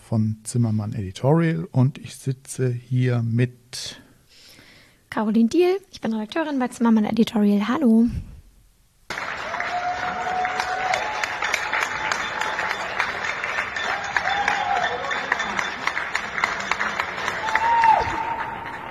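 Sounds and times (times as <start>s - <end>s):
speech: 0.1s - 4.0s, 5.1s - 8.3s
old recorded applause: 9.1s - 18.9s.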